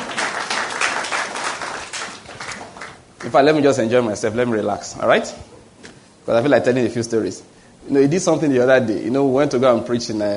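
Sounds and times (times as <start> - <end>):
audience clapping: 0.0 - 3.6
speech: 3.3 - 5.6, 6.3 - 10.3.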